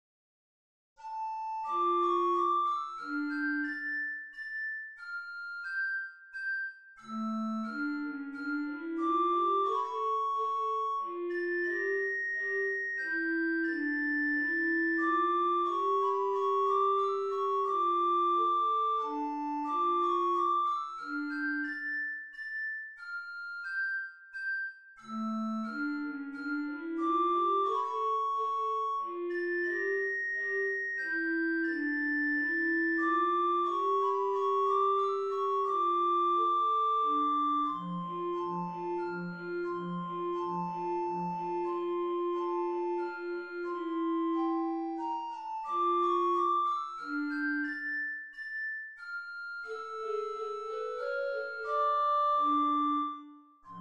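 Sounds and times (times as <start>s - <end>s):
minor-key minuet: 1.0s - 23.8s, 25.0s - 48.4s, 49.0s - 53.7s.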